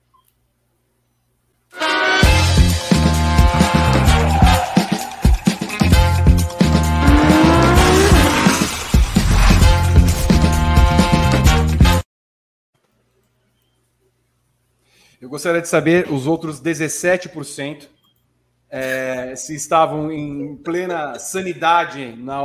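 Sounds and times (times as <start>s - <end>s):
radio show jingle music: 1.9s - 11.7s
rising pitched sweep: 3.6s - 11.4s
racing car engines roaring in a Formula 1 setting: 6.7s - 8.8s
tires squealing: 6.7s - 8.8s
speech: 15.4s - 18.0s, 18.7s - 22.4s.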